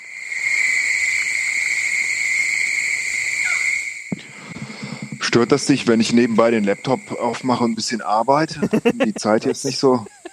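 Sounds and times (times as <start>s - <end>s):
frogs calling at night in a tropical rainforest: 0.0s - 10.3s
night insects buzzing in a tropical rainforest: 0.0s - 10.3s
knock: 4.1s - 5.4s
laughter: 4.2s - 10.3s
speech: 5.3s - 10.2s.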